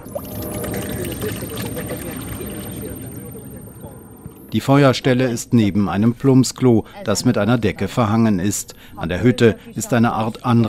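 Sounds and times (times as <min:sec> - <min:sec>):
water poured from canister into kettle: 0:00.0 - 0:03.8
speech: 0:04.5 - 0:10.6.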